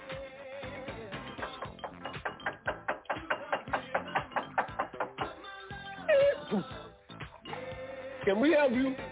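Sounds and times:
knocking on a door: 1.4 - 5.4
speech: 6.5 - 6.8, 8.3 - 9.0.

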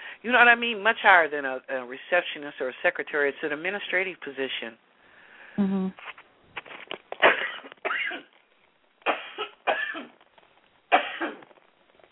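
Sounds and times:
speech: 0.2 - 4.9, 5.6 - 6.1
person coughing: 7.2 - 8.3, 9.1 - 10.2, 10.9 - 11.4.

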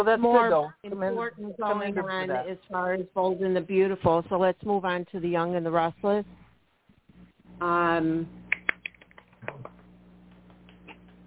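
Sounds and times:
speech: 0.0 - 6.4, 7.6 - 8.4
little hand clap: 8.5 - 11.1.

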